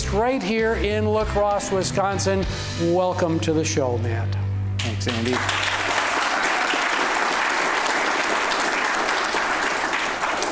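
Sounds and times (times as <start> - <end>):
speech: 0.1 - 5.7
audience applause: 4.8 - 10.5.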